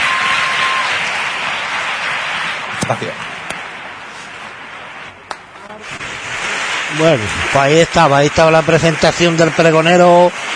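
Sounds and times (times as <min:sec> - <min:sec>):
audience applause: 0:00.0 - 0:03.8, 0:06.2 - 0:10.5
speech: 0:02.9 - 0:03.4, 0:06.9 - 0:10.5.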